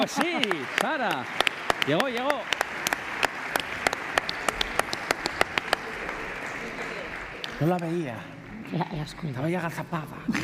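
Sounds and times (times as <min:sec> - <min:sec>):
laughter: 0:00.0 - 0:01.0
speech: 0:00.0 - 0:03.0, 0:07.6 - 0:10.4
small group applauding: 0:00.0 - 0:08.2.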